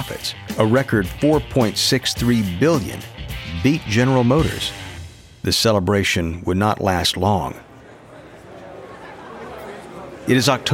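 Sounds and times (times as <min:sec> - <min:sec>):
speech: 0:00.0 - 0:04.8, 0:05.4 - 0:07.6, 0:10.3 - 0:10.7
crowd filing into a convention center chattering: 0:06.9 - 0:10.7.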